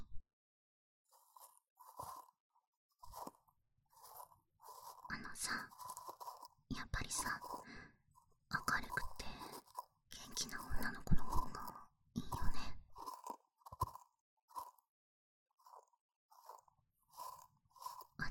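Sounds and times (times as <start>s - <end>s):
ear cleaning: 1.2s - 2.3s, 3.0s - 7.7s, 8.8s - 11.8s, 12.3s - 14.8s, 15.6s - 18.2s.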